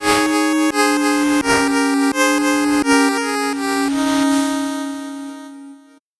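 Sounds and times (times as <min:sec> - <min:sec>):
fast 8-bit jingle: 0:00.0 - 0:05.9.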